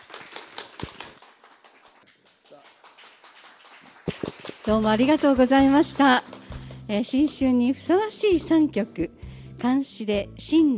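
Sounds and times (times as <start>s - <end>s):
audience applause: 0.0s - 6.8s
speech: 4.7s - 6.3s, 6.9s - 10.7s.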